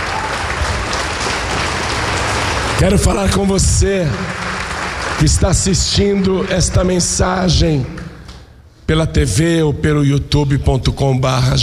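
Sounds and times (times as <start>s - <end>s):
congregation clapping during a church service: 0.0s - 8.6s
speech: 2.8s - 4.5s, 5.2s - 8.0s, 8.9s - 11.6s.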